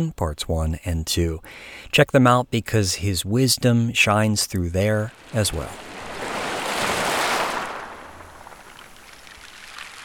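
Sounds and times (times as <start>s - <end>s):
speech: 0.0s - 6.0s
rain in Costa Rica: 4.9s - 10.0s.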